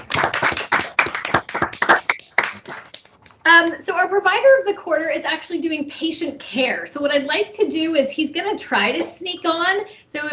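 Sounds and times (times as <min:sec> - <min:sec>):
round of applause, clapping: 0:00.0 - 0:03.2
speech: 0:03.5 - 0:10.3.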